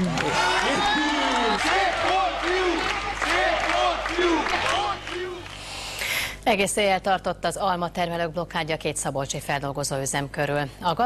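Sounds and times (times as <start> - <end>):
large crowd clapping: 0.0 - 5.8
speech: 6.5 - 11.0.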